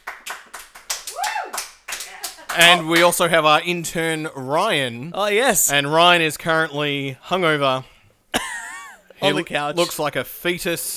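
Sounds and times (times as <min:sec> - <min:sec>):
studio audience of a small group clapping: 0:00.0 - 0:03.3
speech: 0:02.6 - 0:07.9, 0:09.2 - 0:10.9.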